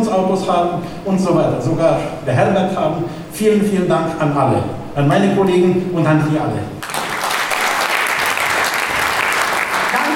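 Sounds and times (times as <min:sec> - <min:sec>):
speech: 0:00.1 - 0:06.8
applause for a show's editorial team: 0:06.8 - 0:10.1.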